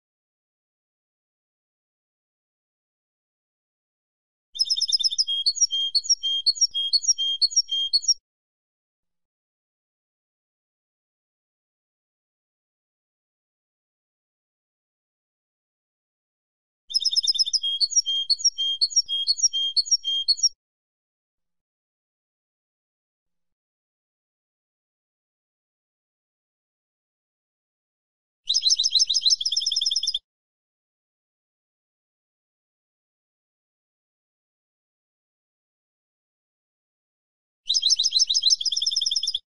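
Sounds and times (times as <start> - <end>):
European goldfinch song: 4.6 - 8.2, 16.9 - 20.6, 28.5 - 30.2, 37.7 - 39.4.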